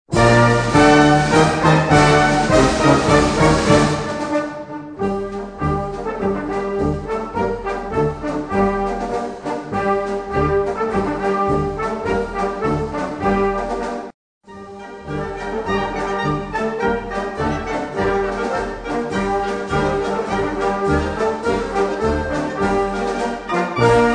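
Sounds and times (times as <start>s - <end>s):
march music: 0.1s - 24.1s.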